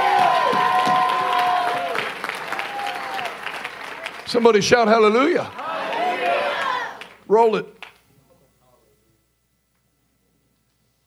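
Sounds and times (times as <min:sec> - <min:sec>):
audience hand clapping: 0:00.0 - 0:08.0
speech: 0:04.3 - 0:05.6, 0:07.3 - 0:07.8.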